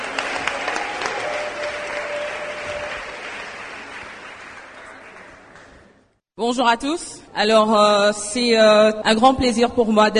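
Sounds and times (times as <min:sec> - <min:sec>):
audience applause: 0:00.0 - 0:06.0
speech: 0:06.4 - 0:10.1.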